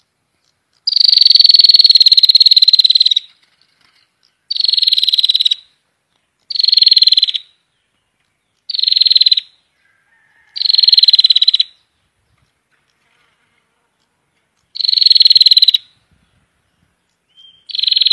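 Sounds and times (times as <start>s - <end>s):
prinia buzzy rattling call bursts: 0.8s - 5.7s, 6.4s - 7.6s, 8.4s - 9.6s, 10.3s - 11.9s, 14.0s - 16.0s, 17.1s - 18.1s.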